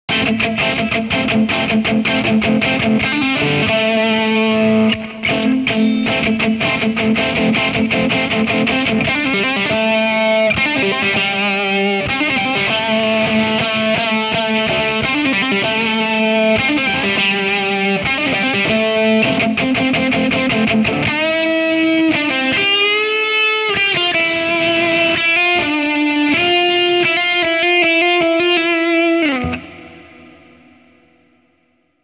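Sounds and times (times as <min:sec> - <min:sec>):
amplified Les Paul electric guitar: 0:00.0 - 0:32.0.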